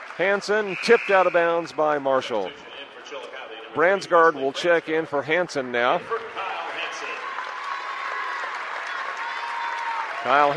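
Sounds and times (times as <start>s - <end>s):
round of applause for the senior: 0.0s - 2.4s, 6.0s - 10.5s
speech: 0.2s - 2.7s, 3.7s - 6.2s, 10.2s - 10.5s.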